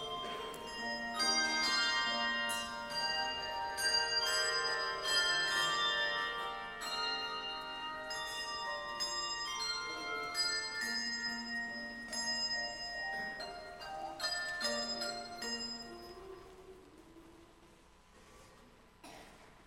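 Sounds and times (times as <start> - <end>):
carillons playing an anthem: 0.0 - 16.6.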